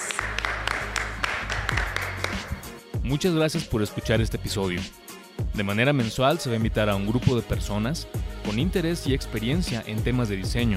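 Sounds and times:
applause: 0.0 - 2.7
speech: 3.1 - 5.0, 5.6 - 10.7.

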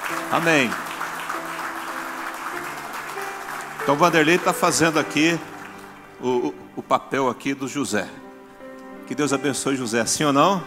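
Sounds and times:
audience applauding: 0.0 - 6.5
speech: 0.3 - 0.8, 3.9 - 5.5, 6.2 - 8.2, 9.1 - 10.6.

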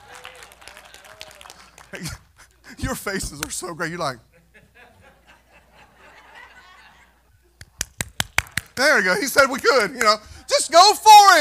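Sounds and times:
audience clapping: 0.0 - 2.3, 7.6 - 10.2
speech: 1.9 - 2.2, 2.8 - 4.3, 8.8 - 11.3
laughter: 4.3 - 7.5.

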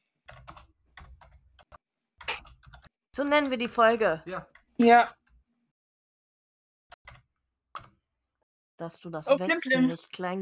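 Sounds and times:
typing a note on a computer keyboard: 0.3 - 2.9, 6.9 - 8.0
speech: 3.2 - 5.2, 8.8 - 10.4.

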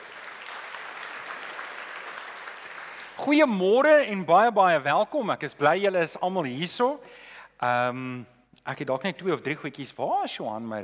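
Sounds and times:
audience applause for the band: 0.0 - 3.2
speech: 3.2 - 10.8.

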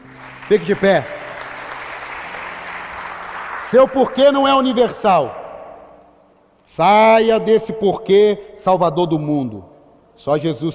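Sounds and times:
audience applauding: 0.0 - 5.4
speech: 0.5 - 1.2, 3.7 - 5.4, 6.7 - 10.7.

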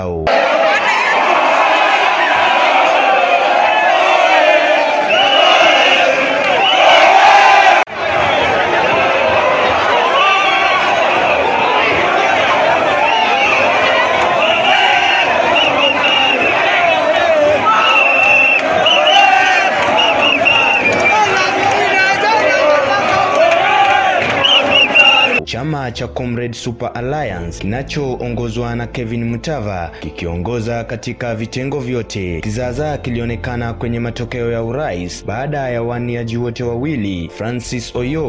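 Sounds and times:
speech: 0.0 - 0.6, 26.0 - 38.2
students cheering and celebrating an election win: 0.3 - 25.4.

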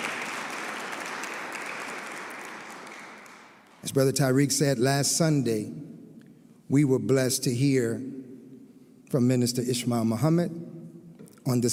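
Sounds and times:
crowd applauding: 0.0 - 3.9
speech: 3.8 - 5.9, 6.7 - 8.2, 9.1 - 10.7, 11.4 - 11.7.

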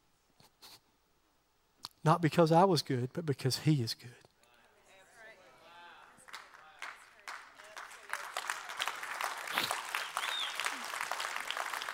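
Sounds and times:
speech: 2.0 - 4.2
audience applause: 5.8 - 11.9.

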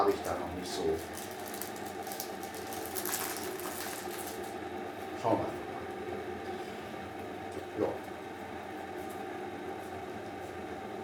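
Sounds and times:
speech: 0.0 - 1.3, 5.2 - 5.6
coffee pad machine heating up with hiss and hum: 0.0 - 11.0.

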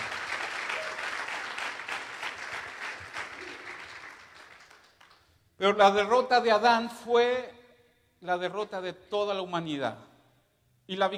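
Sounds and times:
audience applauding loudly: 0.0 - 5.3
speech: 5.6 - 7.6, 8.2 - 10.1, 10.9 - 11.1.

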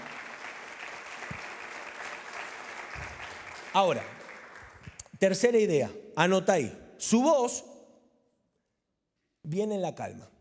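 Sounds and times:
loud applause: 0.0 - 5.1
speech: 3.7 - 4.2, 5.2 - 7.7, 9.5 - 10.3.

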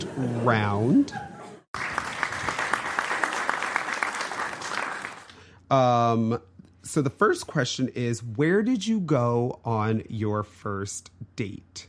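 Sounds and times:
speech: 0.0 - 1.3, 5.7 - 11.8
audience applause: 1.7 - 5.4.

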